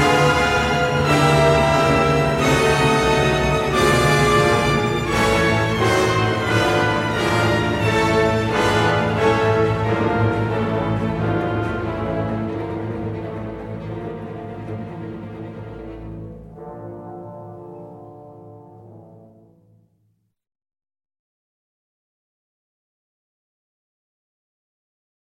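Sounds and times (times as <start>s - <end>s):
symphony orchestra playing: 0.0s - 19.8s.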